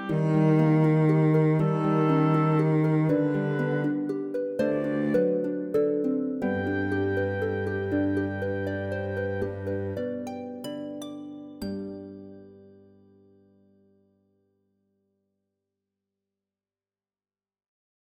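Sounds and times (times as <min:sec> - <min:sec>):
oboe: 0:00.0 - 0:11.0
cello: 0:00.0 - 0:12.3
harp: 0:00.0 - 0:14.0.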